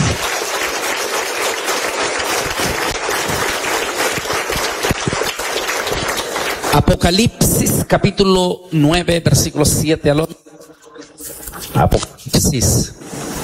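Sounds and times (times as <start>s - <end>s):
crowd applause: 0.0s - 7.2s
speech: 6.8s - 10.4s, 11.7s - 13.0s.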